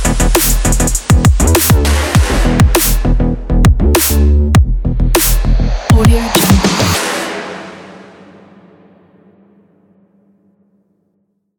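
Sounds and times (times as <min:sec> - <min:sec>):
sport electronic beat: 0:00.0 - 0:07.3.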